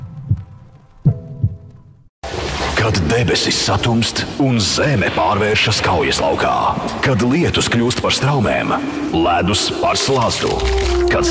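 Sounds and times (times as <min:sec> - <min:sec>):
heartbeat thuds: 0:00.0 - 0:01.8
speech: 0:02.8 - 0:11.2.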